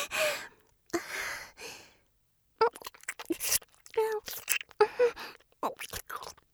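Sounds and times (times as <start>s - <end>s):
deep kissing: 2.6s - 5.9s.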